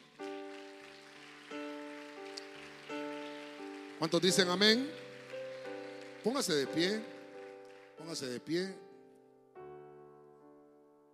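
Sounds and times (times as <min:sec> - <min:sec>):
loud clapping: 0:00.0 - 0:08.6
speech: 0:04.0 - 0:05.0, 0:06.2 - 0:07.1, 0:08.0 - 0:08.8.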